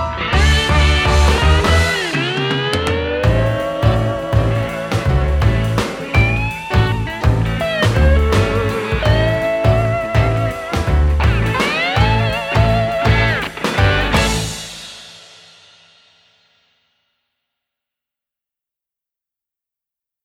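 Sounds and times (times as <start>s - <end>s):
freestyle instrumental: 0.0s - 15.0s.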